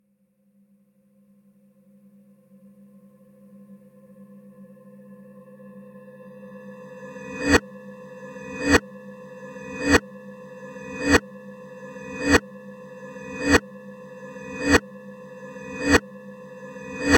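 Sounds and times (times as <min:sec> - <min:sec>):
multiple clocks ticking reversed: 0:11.0 - 0:11.2, 0:12.2 - 0:12.4, 0:13.4 - 0:13.6, 0:14.6 - 0:14.8, 0:15.8 - 0:16.0.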